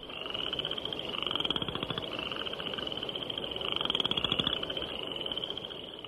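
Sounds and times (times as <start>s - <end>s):
spring peepers ascending peeps: 0.0s - 6.0s
western chorus frogs calling: 0.0s - 6.0s.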